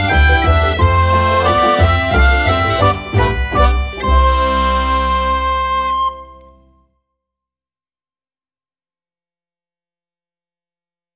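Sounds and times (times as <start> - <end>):
waltz music: 0.0 - 6.8.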